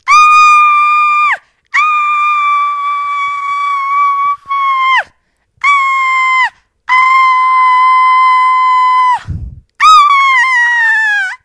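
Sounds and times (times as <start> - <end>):
paranormal scream: 0.0 - 11.4.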